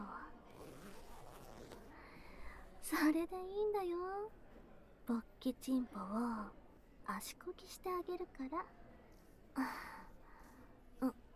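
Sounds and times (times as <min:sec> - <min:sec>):
clothing zipper being pulled open: 0:00.4 - 0:02.0
speech: 0:02.9 - 0:04.4, 0:05.1 - 0:08.8, 0:09.6 - 0:10.0, 0:11.0 - 0:11.2.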